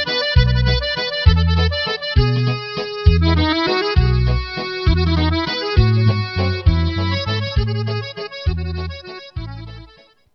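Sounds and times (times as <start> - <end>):
musette accordion mix: 0.0 - 10.3.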